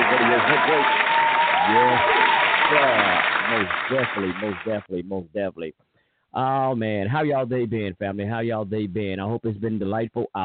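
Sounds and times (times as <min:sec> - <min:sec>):
round of applause: 0:00.0 - 0:04.8
speech: 0:00.4 - 0:10.4.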